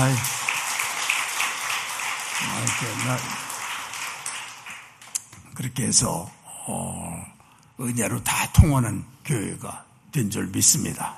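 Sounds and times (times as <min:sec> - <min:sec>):
speech: 0:00.0 - 0:00.3, 0:02.4 - 0:03.5, 0:05.6 - 0:11.1
audience applauding: 0:00.0 - 0:05.2.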